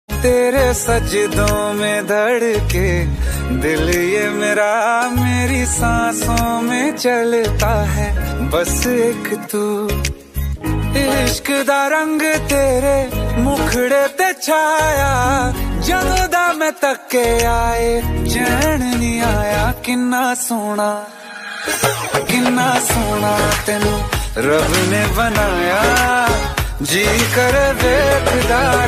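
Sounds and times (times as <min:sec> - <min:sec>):
Bollywood love song ringtone: 0:00.1 - 0:28.8.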